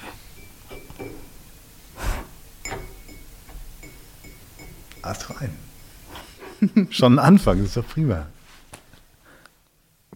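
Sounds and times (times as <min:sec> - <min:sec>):
fingernails tapping a cup: 0:02.7 - 0:05.6
speech: 0:05.0 - 0:05.8, 0:06.6 - 0:08.4.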